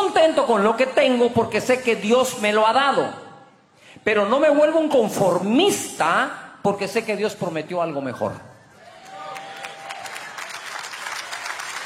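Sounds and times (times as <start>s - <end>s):
speech: 0.1s - 3.2s, 4.0s - 8.5s
audience applause: 8.8s - 11.8s.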